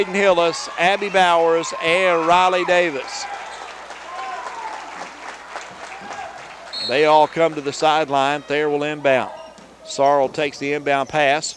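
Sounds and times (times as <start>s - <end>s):
speech: 0.0s - 3.4s, 6.9s - 11.5s
crowd applauding players leaving the court: 0.0s - 8.4s
scattered cheers: 0.0s - 8.6s.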